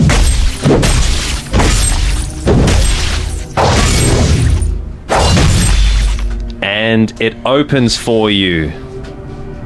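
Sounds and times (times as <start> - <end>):
axe bashing down a door: 0.0 - 6.2
speech: 6.9 - 8.9.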